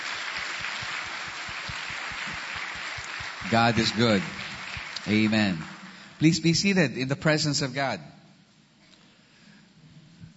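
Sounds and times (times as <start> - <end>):
audience applause: 0.0 - 6.2
speech: 3.5 - 4.4, 5.0 - 8.1.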